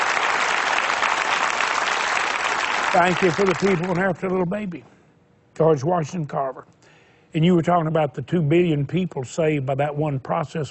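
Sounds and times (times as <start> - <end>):
audience applause: 0.0 - 4.4
speech: 2.9 - 4.9, 5.6 - 10.6.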